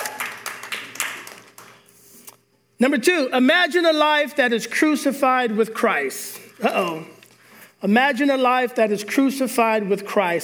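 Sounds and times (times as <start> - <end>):
audience hand clapping: 0.0 - 1.9
speech: 2.8 - 7.2, 7.8 - 10.4.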